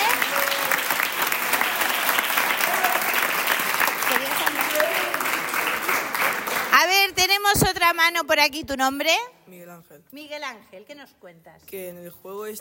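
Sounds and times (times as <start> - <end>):
audience applause: 0.0 - 6.9
speech: 7.9 - 12.6.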